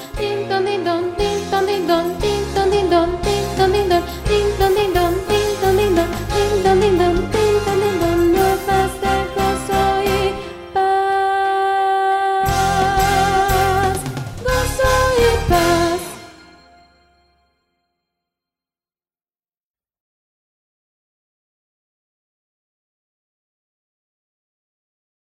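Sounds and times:
contralto singing: 0.0 - 16.4.

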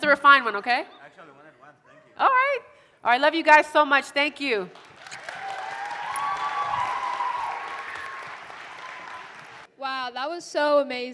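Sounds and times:
speech: 0.1 - 1.4, 2.2 - 4.9, 10.1 - 11.1
applause: 4.7 - 9.7.

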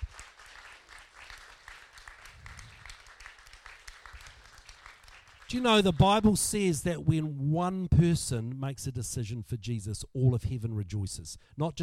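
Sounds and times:
audience clapping hands: 0.0 - 6.6
speech: 5.5 - 11.8.

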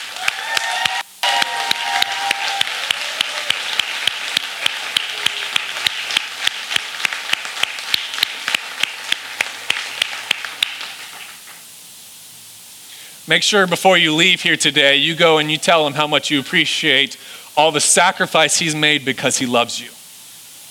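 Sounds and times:
standing ovation applause: 0.0 - 11.6
speech: 13.3 - 20.0.

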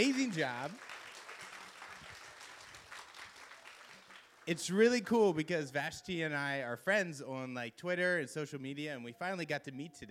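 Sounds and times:
speech: 0.0 - 1.0, 4.5 - 10.0
crowd applause: 0.0 - 4.7.

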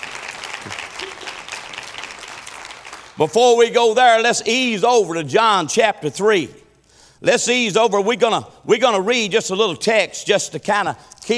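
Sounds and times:
audience hand clapping: 0.0 - 4.7
speech: 3.2 - 6.6, 7.2 - 11.3.

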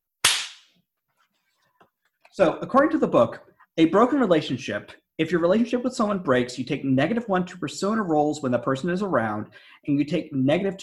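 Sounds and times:
single hand clap: 0.2 - 0.7
speech: 2.4 - 10.8.

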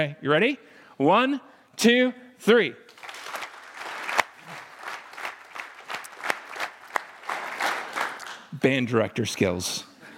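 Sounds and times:
speech: 0.0 - 2.9, 8.6 - 9.9
group clapping in unison: 2.9 - 8.6.

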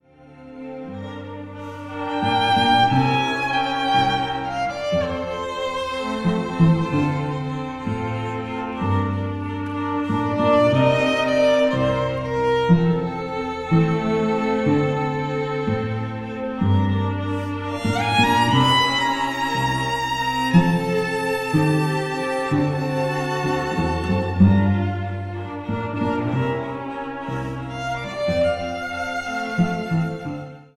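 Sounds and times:
string quartet: 0.0 - 30.7.

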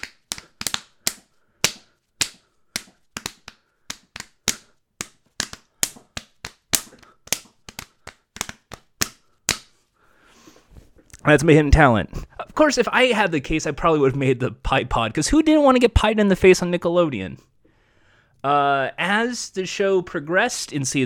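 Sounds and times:
belly slapping to a tune: 0.0 - 9.8
speech: 11.3 - 17.5, 18.4 - 21.0.

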